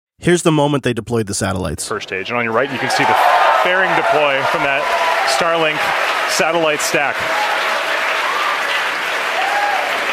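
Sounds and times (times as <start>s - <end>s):
speech: 0.2s - 7.6s
crowd cheering and applauding at headquarters: 2.4s - 10.1s.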